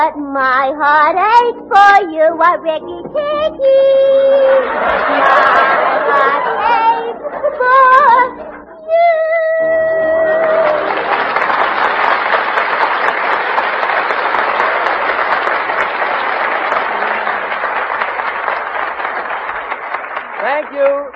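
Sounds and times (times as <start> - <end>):
speech: 0.1 - 10.6, 20.7 - 21.1
laughter: 4.4 - 9.0
audience applause: 4.6 - 7.1, 10.0 - 21.1.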